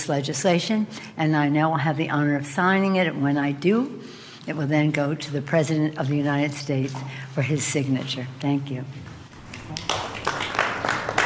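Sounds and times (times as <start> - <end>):
speech: 0.0 - 9.1
polite golf-style applause: 9.5 - 11.2.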